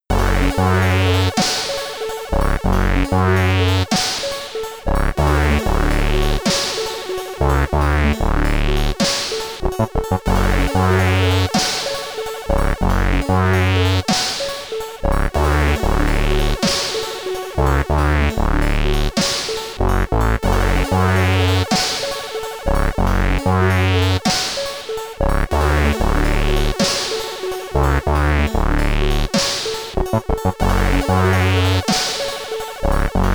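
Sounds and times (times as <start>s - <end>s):
SID stereo chiptune loading music: 0.1s - 33.3s.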